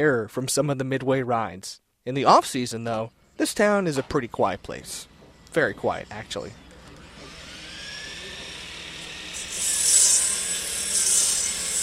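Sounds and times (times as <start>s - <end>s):
speech: 0.0s - 6.6s
saw grinding steadily through wood: 7.0s - 11.8s.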